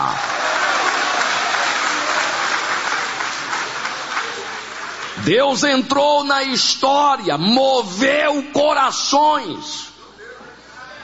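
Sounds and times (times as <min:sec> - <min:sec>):
audience applauding: 0:00.0 - 0:05.3
speech: 0:05.3 - 0:09.9.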